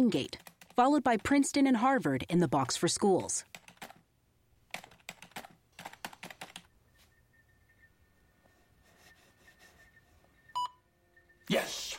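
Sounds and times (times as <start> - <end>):
typing on a computer keyboard while searching a database: 0.0 - 1.6, 2.6 - 4.0, 4.7 - 6.7
speech: 0.0 - 3.6
short electronic beep: 10.5 - 11.5.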